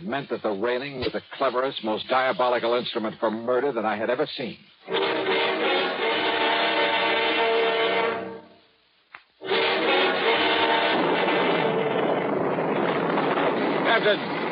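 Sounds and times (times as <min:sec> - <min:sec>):
storm wind: 0:00.0 - 0:14.4
speech: 0:00.1 - 0:05.2, 0:14.0 - 0:14.4
thunder in a storm: 0:10.1 - 0:14.4.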